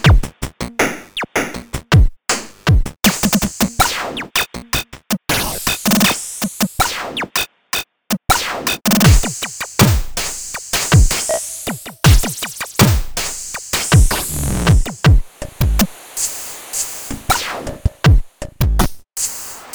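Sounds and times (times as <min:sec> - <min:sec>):
computer drums: 0:00.0 - 0:07.3, 0:08.1 - 0:19.7.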